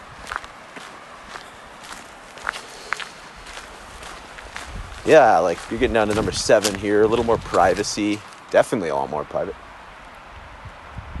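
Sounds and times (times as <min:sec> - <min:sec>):
footsteps walking through a riverside campground: 0:00.0 - 0:09.5
quiet outdoor hiss: 0:00.0 - 0:11.1
speech: 0:05.0 - 0:09.6.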